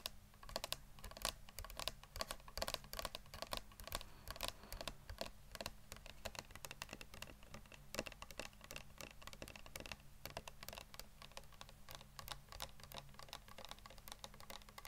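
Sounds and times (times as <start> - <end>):
fast tapping clicks: 0.0 - 14.8
steady low hum: 3.7 - 6.0.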